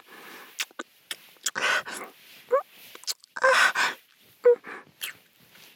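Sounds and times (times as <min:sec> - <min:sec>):
deep kissing and caressing: 0:00.6 - 0:01.7, 0:05.0 - 0:05.2.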